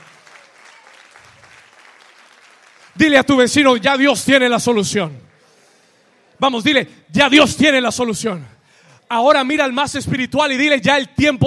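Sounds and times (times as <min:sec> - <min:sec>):
crowd applauding: 0:00.0 - 0:03.8
speech: 0:03.0 - 0:05.3, 0:06.4 - 0:11.4.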